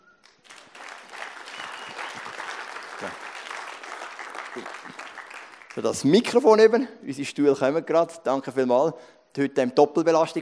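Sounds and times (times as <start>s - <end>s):
audience applause: 0.3s - 6.0s
speech: 4.6s - 5.0s, 5.8s - 10.4s.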